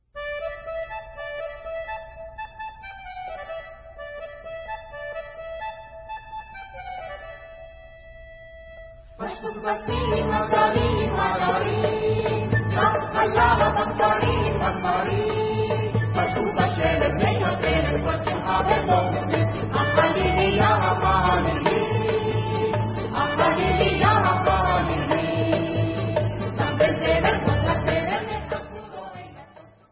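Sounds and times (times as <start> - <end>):
vocals: 9.2 - 29.8.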